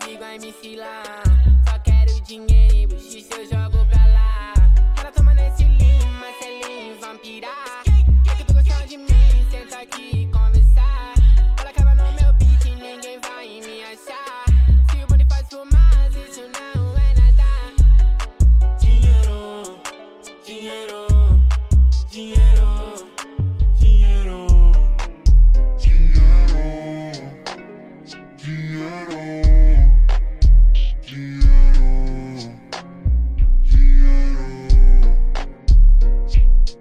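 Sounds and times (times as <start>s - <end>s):
deep bass: 1.3s - 6.2s, 7.9s - 9.6s, 10.2s - 12.8s, 14.5s - 16.2s, 16.8s - 19.4s, 21.1s - 26.9s, 29.4s - 36.7s.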